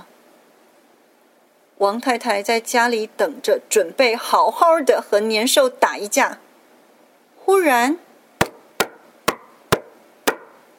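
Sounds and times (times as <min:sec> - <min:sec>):
speech: 0:01.8 - 0:06.5, 0:07.5 - 0:08.1
knocking on a door: 0:08.4 - 0:10.5.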